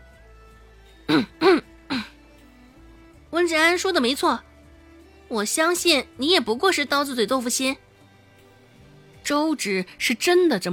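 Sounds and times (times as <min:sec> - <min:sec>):
speech: 0:01.1 - 0:01.6, 0:03.5 - 0:04.5, 0:05.3 - 0:07.8, 0:09.3 - 0:10.7
person clearing throat: 0:01.1 - 0:02.2.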